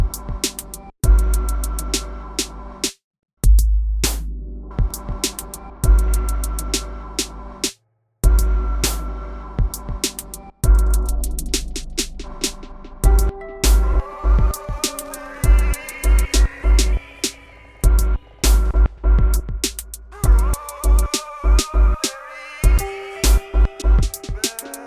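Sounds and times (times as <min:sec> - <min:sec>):
music beat for an MC: 0:00.0 - 0:02.6, 0:03.4 - 0:07.4, 0:08.2 - 0:24.8.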